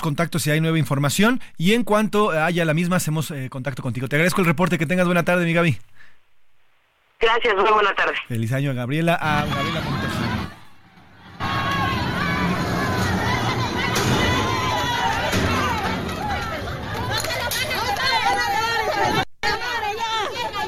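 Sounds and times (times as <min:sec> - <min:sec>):
speech: 0:00.0 - 0:05.9, 0:07.2 - 0:10.2
shouting crowd in recorded clash at prison: 0:09.2 - 0:20.6.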